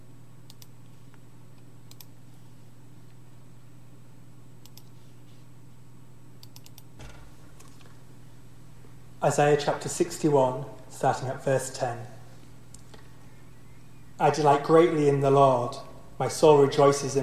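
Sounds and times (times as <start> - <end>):
steady low electrical hum: 0.0 - 17.2
faint computer keyboard and mouse clicks: 0.5 - 0.7, 1.9 - 2.1, 4.6 - 4.9, 6.4 - 6.9
speech: 9.2 - 12.2, 14.2 - 17.2.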